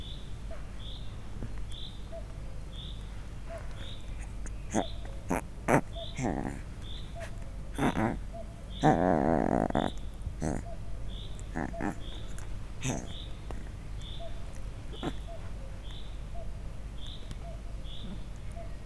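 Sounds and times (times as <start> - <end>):
leopard cub mewing grumbles: 3.5 - 16.6.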